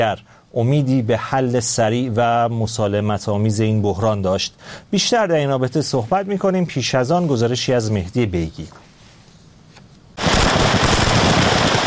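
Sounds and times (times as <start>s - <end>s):
speech: 0.0s - 8.9s
gunfire exchange between armed forces: 10.2s - 11.8s.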